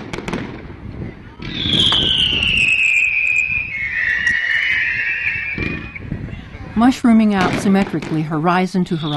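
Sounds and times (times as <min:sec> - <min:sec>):
fireworks shells bursting in the sky: 0:00.0 - 0:09.1
whistling firework shell: 0:01.4 - 0:06.2
speech: 0:06.8 - 0:09.1.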